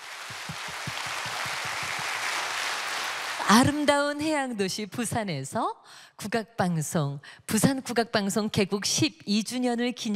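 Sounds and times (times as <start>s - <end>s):
large crowd applauding after a performance: 0.0s - 3.7s
speech: 3.5s - 10.1s.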